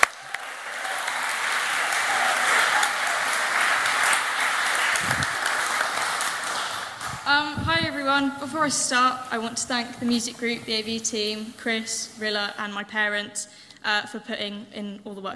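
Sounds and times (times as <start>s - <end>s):
audience cheering: 0.0s - 7.3s
speech: 8.2s - 15.3s.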